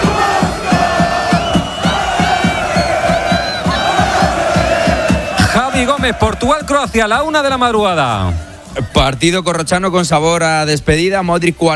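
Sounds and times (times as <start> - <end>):
Croatian football fans chanting in stadium: 0.0 - 7.4
speech: 6.0 - 11.7.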